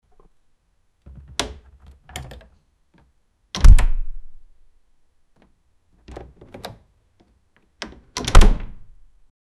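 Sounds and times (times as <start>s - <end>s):
wooden door opening: 1.1s - 2.5s, 3.6s - 4.2s, 6.0s - 6.9s, 7.8s - 8.9s.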